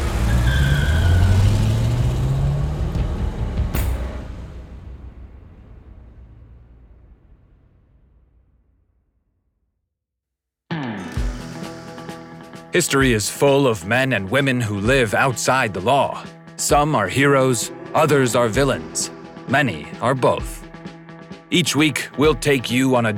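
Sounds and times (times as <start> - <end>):
car engine roaring as it accelerates and drives off: 0.0 - 4.6
speech: 12.7 - 20.6, 21.5 - 23.1.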